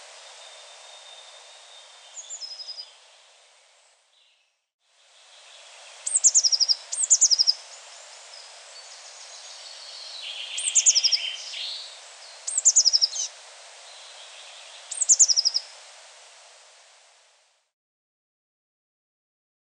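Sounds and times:
Eurasian blue tit Cyanistes caeruleus singing: 0.4 - 2.9, 5.5 - 7.6, 8.8 - 13.3, 14.2 - 15.7.

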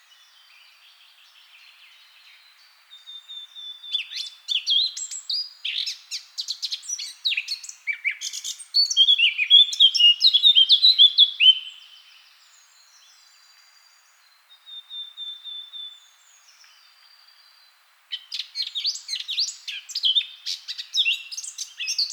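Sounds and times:
Eurasian blackcap singing: 3.1 - 12.0, 18.1 - 22.1.

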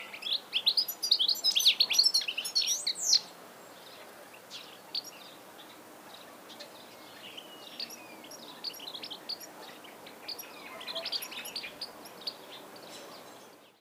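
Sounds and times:
European goldfinch Carduelis carduelis singing: 0.0 - 13.7.

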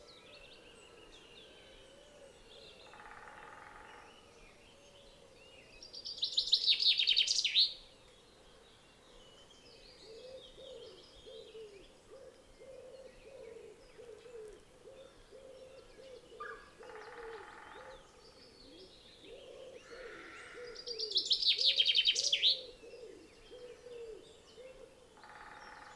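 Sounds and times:
common chaffinch Fringilla coelebs singing: 0.0 - 25.9.

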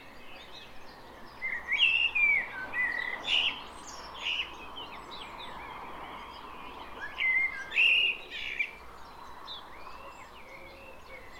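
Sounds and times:
common blackbird singing: 0.0 - 11.3.

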